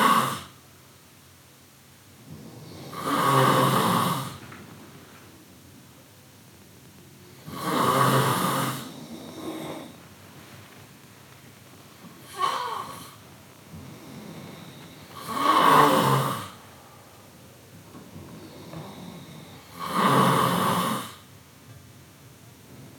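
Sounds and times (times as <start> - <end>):
person snoring: 2.4 - 4.4, 7.4 - 10.0, 12.2 - 13.2, 13.9 - 16.6, 18.6 - 21.2.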